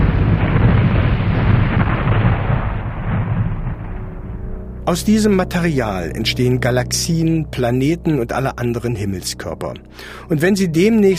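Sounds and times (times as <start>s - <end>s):
huge supernova explosion: 0.0s - 8.3s
speech: 4.9s - 11.1s.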